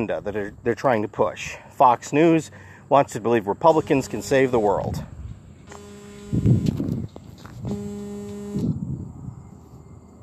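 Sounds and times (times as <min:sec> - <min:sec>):
speech: 0:00.0 - 0:06.7
alarm going off in buzzy electronic tones: 0:03.8 - 0:04.7, 0:05.6 - 0:06.8, 0:07.6 - 0:08.8.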